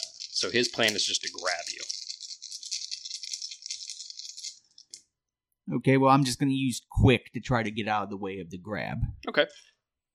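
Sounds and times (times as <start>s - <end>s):
dice rolling: 0.0s - 5.1s
speech: 0.4s - 2.0s, 5.7s - 9.7s.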